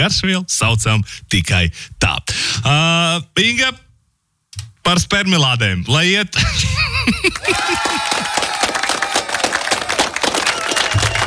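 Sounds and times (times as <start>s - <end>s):
speech: 0.0s - 3.8s, 4.8s - 8.3s
laughter: 6.4s - 9.2s
steady applause from a crowd: 7.3s - 11.2s.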